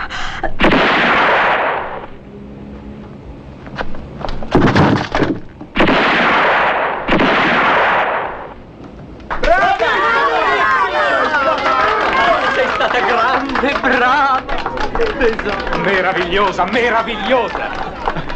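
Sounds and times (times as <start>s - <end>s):
heavy gunfire: 0.6s - 2.1s, 4.5s - 8.6s
laughter: 9.4s - 18.3s
speech: 15.4s - 17.8s.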